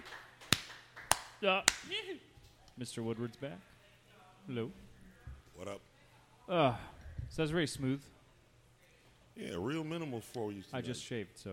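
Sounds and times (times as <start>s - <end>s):
sparse clapping from a studio audience: 0.0s - 1.9s
speech: 1.4s - 3.7s, 4.4s - 4.9s, 5.6s - 5.9s, 6.5s - 8.2s, 9.4s - 11.5s.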